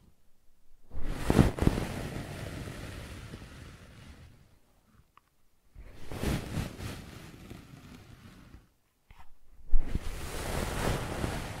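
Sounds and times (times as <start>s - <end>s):
brushing and scratching strokes: 0.9s - 2.0s, 5.8s - 11.5s.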